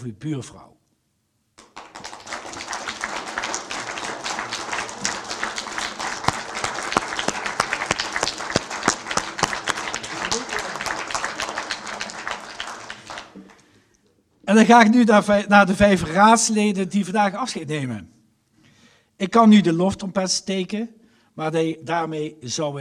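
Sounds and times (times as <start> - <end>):
speech: 0.0 - 0.7, 14.5 - 18.2, 19.2 - 22.8
audience applause: 1.6 - 13.8.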